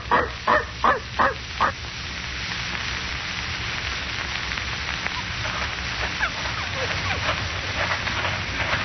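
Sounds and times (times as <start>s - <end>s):
hiss: 0.0s - 8.8s
dog barking: 0.1s - 1.8s.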